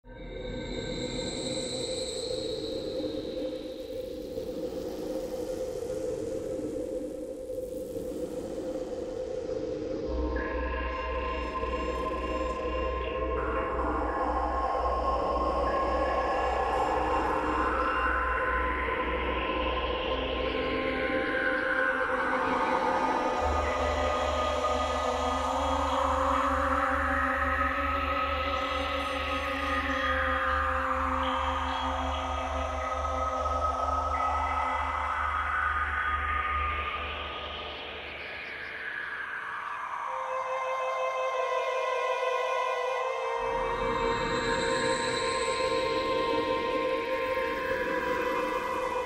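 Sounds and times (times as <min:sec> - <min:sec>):
haunted hallway ambience: 0:00.1 - 0:49.0.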